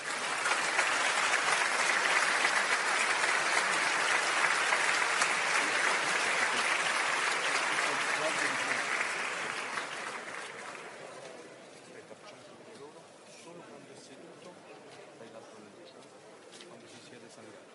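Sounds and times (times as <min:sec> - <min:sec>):
crowd applause: 0:00.0 - 0:11.4.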